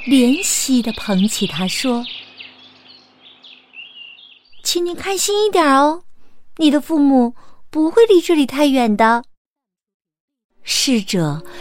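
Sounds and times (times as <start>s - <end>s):
speech: 0.0s - 2.2s, 4.7s - 9.3s, 10.6s - 11.5s
small bird chirping: 0.0s - 5.2s.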